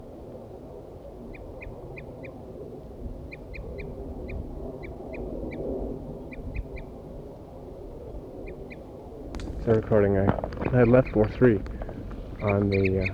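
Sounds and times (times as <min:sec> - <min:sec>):
wild birds calling: 0:09.4 - 0:13.1
speech: 0:09.7 - 0:11.8, 0:12.4 - 0:13.1.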